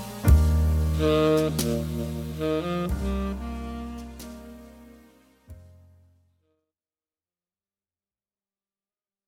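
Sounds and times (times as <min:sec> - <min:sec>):
instrumental music: 0:00.0 - 0:06.6.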